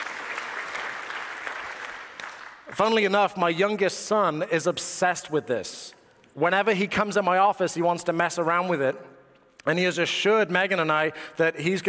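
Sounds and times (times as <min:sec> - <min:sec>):
crowd applauding: 0:00.0 - 0:02.7
speech: 0:02.7 - 0:11.8.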